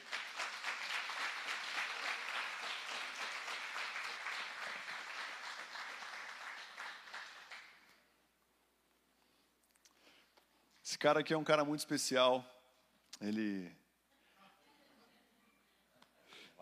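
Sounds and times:
audience applause: 0.0 - 7.9
speech: 11.0 - 12.6, 13.2 - 13.8.

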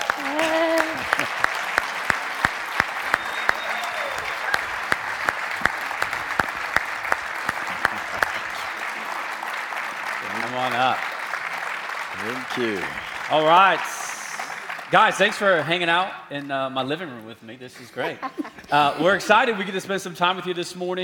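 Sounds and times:
audience applause: 0.0 - 16.0
laughter: 0.1 - 1.6, 7.4 - 9.2, 17.8 - 19.8
cheers and whistle: 2.4 - 6.5, 12.5 - 14.7
speech: 13.3 - 13.9, 14.9 - 21.0.

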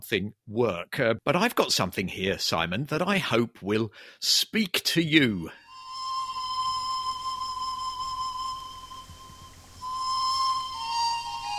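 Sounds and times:
speech: 0.0 - 5.6
flute from the highlands of Peru: 5.6 - 11.5.

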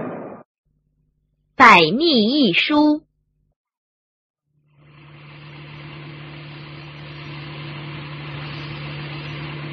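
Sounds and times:
speech: 1.6 - 3.1
car engine driving: 4.7 - 9.7.

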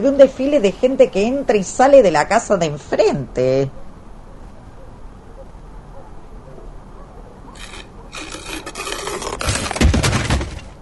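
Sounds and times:
speech: 0.0 - 3.8
wooden coffin scraping, stuck in doorway: 7.6 - 10.7.

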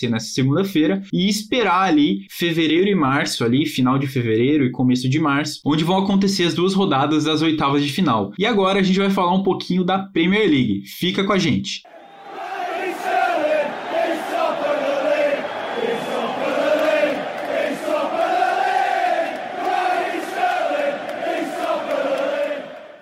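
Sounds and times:
speech: 0.0 - 11.9
football fans chanting: 11.9 - 23.0.

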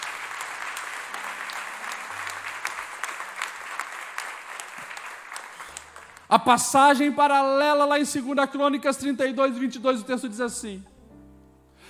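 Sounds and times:
audience applauding: 0.0 - 6.5
speech: 6.3 - 10.9.

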